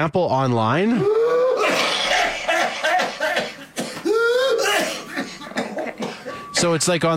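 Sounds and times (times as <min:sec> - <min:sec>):
speech: 0:00.0 - 0:01.2, 0:06.6 - 0:07.1
whooping cough with whoop on inhale: 0:01.6 - 0:06.6.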